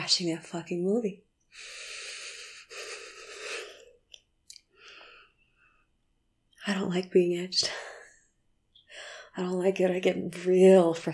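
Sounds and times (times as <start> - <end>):
speech: 0.1 - 1.9, 6.6 - 7.9, 9.4 - 11.1
hitching wheezing breathing: 1.5 - 4.2.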